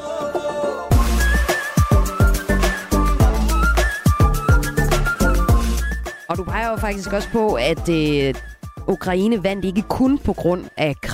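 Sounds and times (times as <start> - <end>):
breathy flute melody over ethno-pop track: 0.9 - 8.9
speech: 6.7 - 11.1.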